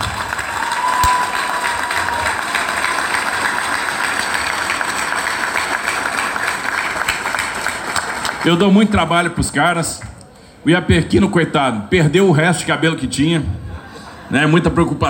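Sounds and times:
audience applause: 0.0s - 9.4s
speech: 8.4s - 13.6s, 14.3s - 15.0s.

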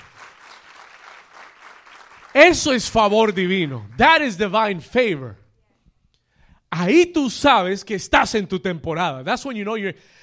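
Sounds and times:
audience applauding: 0.0s - 4.5s
speech: 2.4s - 5.4s, 6.7s - 10.2s.

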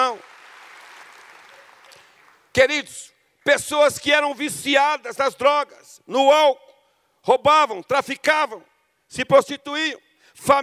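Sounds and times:
audience applauding: 0.0s - 2.6s
speech: 2.6s - 10.6s.

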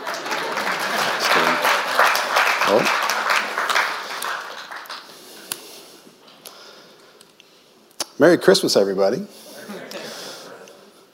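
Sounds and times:
audience clapping: 0.0s - 5.6s
speech: 2.7s - 3.0s, 8.2s - 9.4s.

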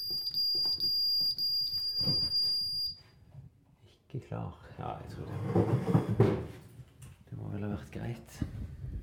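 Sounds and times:
alarm system beeping: 0.0s - 3.0s
speech: 4.2s - 6.6s, 7.6s - 8.8s.

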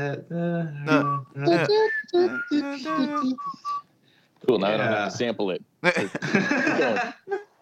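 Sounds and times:
speech: 0.0s - 3.8s, 4.5s - 7.4s
person whistling an imitation of video game console music: 0.9s - 3.9s.

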